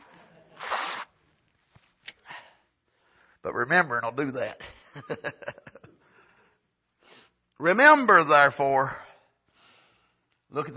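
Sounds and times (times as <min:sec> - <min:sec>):
person blowing nose: 0:00.5 - 0:01.2
speech: 0:03.4 - 0:05.8, 0:07.6 - 0:09.0, 0:10.5 - 0:10.7.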